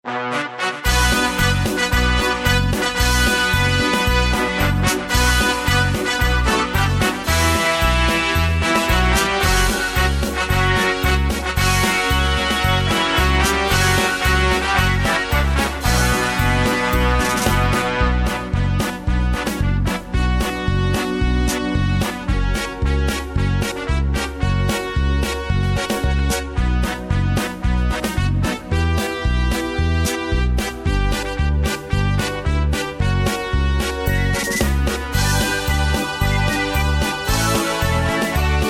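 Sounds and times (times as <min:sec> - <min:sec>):
children's backing track: 0:00.1 - 0:38.6.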